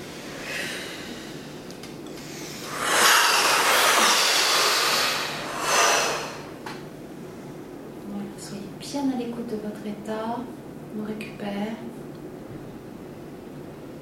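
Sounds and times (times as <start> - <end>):
group breathing in deeply during a guided breathing exercise: 0.0 - 6.7
speech: 9.5 - 12.1.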